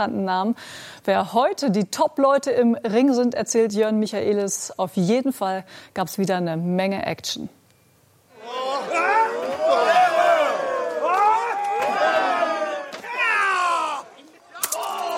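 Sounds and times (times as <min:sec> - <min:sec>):
speech: 0:00.0 - 0:07.6
wrestling crowd cheering and shouting: 0:08.3 - 0:15.1.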